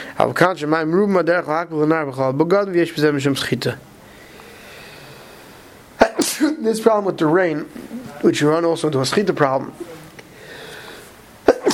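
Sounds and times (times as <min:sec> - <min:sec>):
speech: 0:00.2 - 0:03.9, 0:06.6 - 0:10.0
sneeze: 0:06.0 - 0:06.6, 0:11.4 - 0:11.7.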